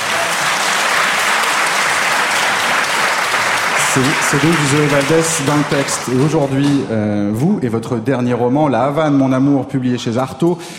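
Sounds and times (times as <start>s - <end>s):
dramatic applause: 0.0s - 6.8s
speech: 4.0s - 10.7s.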